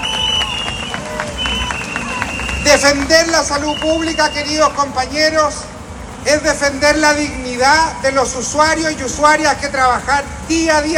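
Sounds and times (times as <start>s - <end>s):
crowd applauding: 0.0s - 4.9s
speech: 2.7s - 10.9s.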